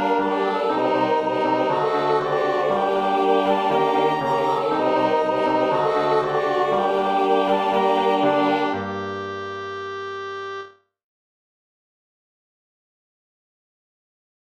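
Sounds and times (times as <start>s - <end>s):
choir singing: 0.0s - 9.1s
piano: 0.0s - 10.7s
clarinet: 0.0s - 10.8s
flute: 0.0s - 10.8s.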